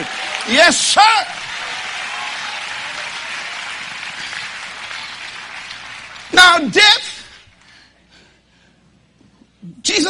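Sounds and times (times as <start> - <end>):
audience clapping and shouting: 0.0 - 7.8
speech: 0.5 - 1.4, 6.4 - 7.0.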